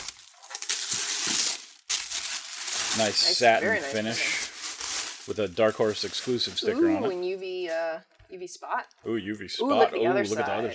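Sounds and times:
tissue paper crinkling as it is unwrapped: 0:00.0 - 0:07.7
speech: 0:03.0 - 0:04.4, 0:05.3 - 0:10.7.

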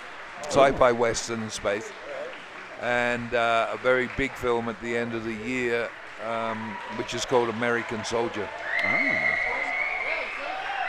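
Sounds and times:
audience cheering and applauding at a question-and-answer session: 0:00.0 - 0:10.8
speech: 0:00.4 - 0:02.0, 0:02.8 - 0:09.5.

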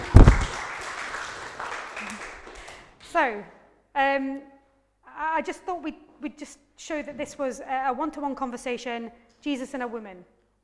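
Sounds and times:
audience clapping: 0:00.0 - 0:03.1
speech: 0:03.1 - 0:04.5, 0:05.2 - 0:10.6.

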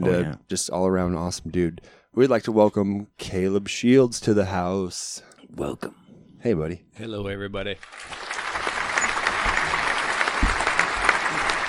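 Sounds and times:
speech: 0:00.0 - 0:08.3
audience cheering and applause: 0:07.8 - 0:11.6.

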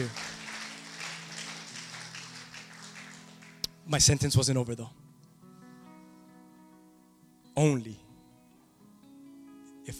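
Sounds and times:
speech: 0:00.0 - 0:00.2, 0:03.9 - 0:05.0, 0:07.6 - 0:08.0
audience clapping: 0:00.0 - 0:03.8.

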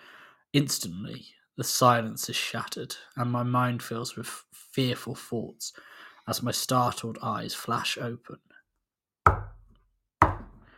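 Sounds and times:
speech: 0:00.5 - 0:08.5
fist knocking on glass: 0:09.3 - 0:10.6.

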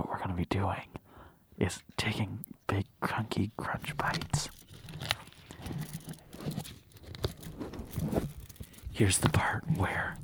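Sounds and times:
speech: 0:00.4 - 0:01.0, 0:01.6 - 0:05.9, 0:09.0 - 0:10.2
candy bar foil wrapper being torn open: 0:03.8 - 0:09.2.

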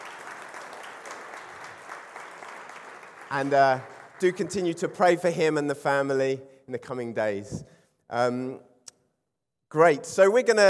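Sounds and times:
audience applause: 0:00.0 - 0:04.5
speech: 0:03.3 - 0:08.7, 0:09.7 - 0:10.6.

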